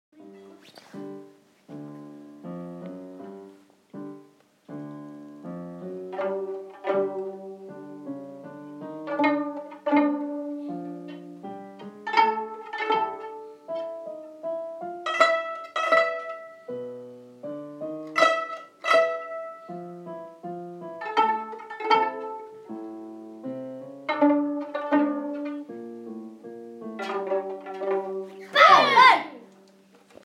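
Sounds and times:
violins: 5.8 - 14.0, 15.0 - 16.9, 18.0 - 19.9, 20.9 - 25.8, 26.9 - 29.2.

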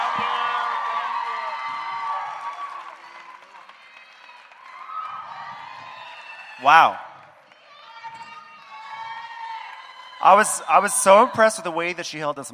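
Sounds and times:
cheers and whoops: 0.0 - 11.9
crowd applauding: 0.0 - 12.1
speech: 6.6 - 7.0, 10.3 - 12.5.

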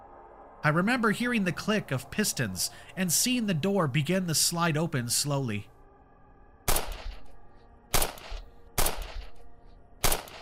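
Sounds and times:
speech: 0.6 - 5.7
gunshots: 6.7 - 7.3, 7.9 - 9.4, 10.0 - 10.4.

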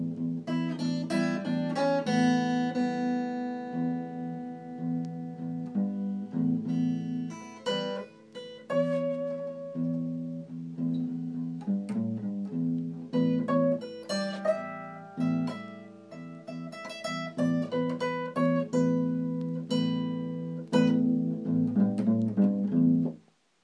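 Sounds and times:
blues riff: 0.0 - 23.2.

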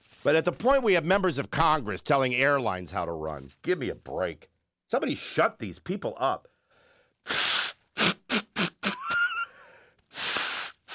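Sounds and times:
speech: 0.2 - 6.5
nose blowing: 7.2 - 10.9.

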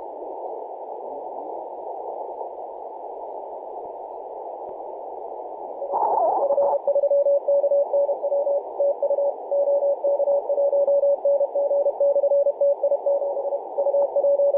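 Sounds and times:
CW morse code tones on 10.113 MHz: 6.4 - 14.5.

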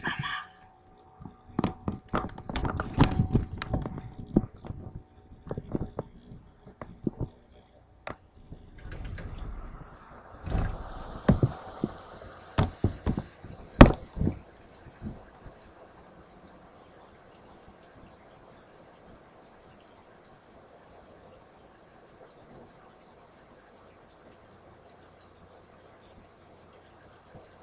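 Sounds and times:
rain dripping and tapping outside an open window: 1.0 - 27.6
rainfall hiss outside an open window: 8.0 - 27.6.

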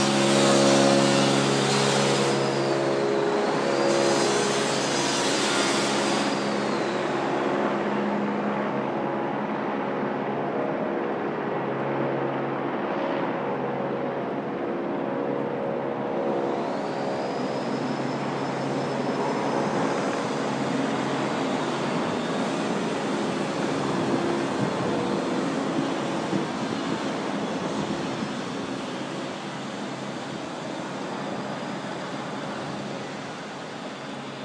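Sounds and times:
helicopter: 0.0 - 34.4.

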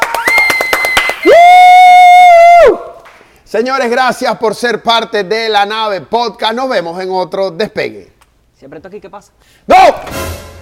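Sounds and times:
audience applause: 0.0 - 1.4
audience cheering: 0.0 - 2.9
speech: 3.5 - 10.4.

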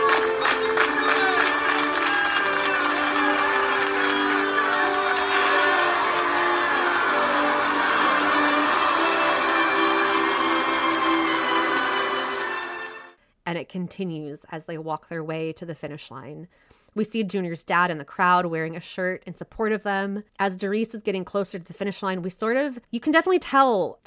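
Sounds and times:
roar of applause: 0.0 - 12.8
speech: 13.7 - 24.0.

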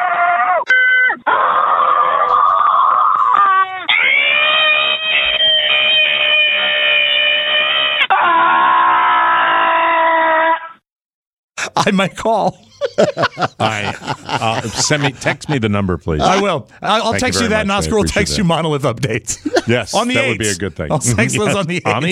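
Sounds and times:
montage of people screaming: 0.0 - 10.8
laughter: 11.6 - 18.6, 19.3 - 22.1
speech: 11.8 - 22.1.

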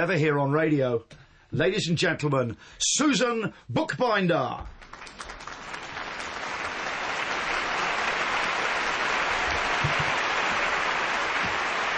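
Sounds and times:
speech: 0.0 - 5.2
applause sound effect: 4.7 - 11.9.

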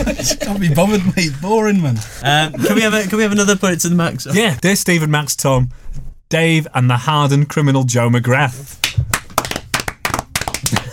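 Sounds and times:
laughter: 0.0 - 1.3, 2.2 - 3.4
speech: 0.0 - 9.2
hands clapping: 8.8 - 10.9.

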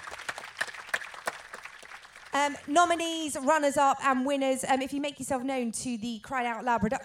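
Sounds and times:
audience applause: 0.0 - 2.7
speech: 2.4 - 7.0.

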